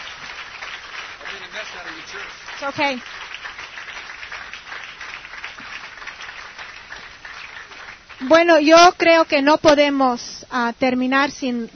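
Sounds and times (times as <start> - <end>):
church congregation clapping offering to God: 0.0 - 9.2
speech: 1.6 - 3.3, 8.2 - 11.7.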